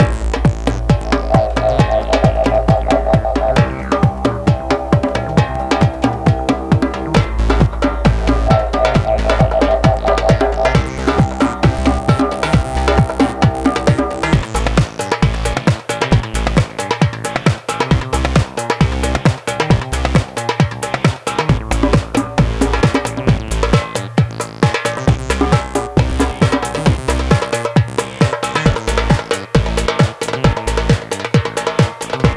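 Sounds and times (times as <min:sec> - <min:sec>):
tribal loop: 0:00.0 - 0:32.3.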